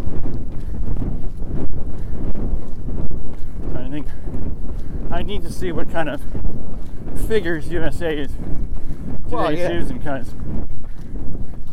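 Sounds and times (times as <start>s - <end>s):
wind blowing across a microphone: 0.0s - 11.7s
speech: 5.3s - 6.6s, 7.3s - 8.6s, 9.3s - 10.6s.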